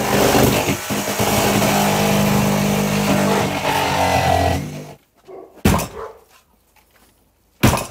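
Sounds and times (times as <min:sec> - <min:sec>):
ripsaw cutting through plastic front door: 0:00.0 - 0:05.0
sharp thuds: 0:05.6 - 0:06.1.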